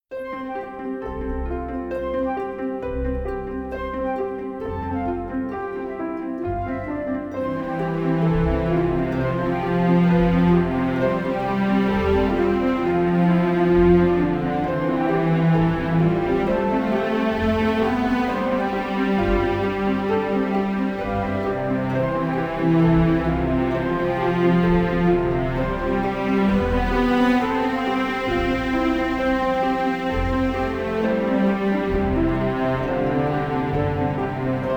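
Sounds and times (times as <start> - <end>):
trailer music without choir: 0.1 - 34.7.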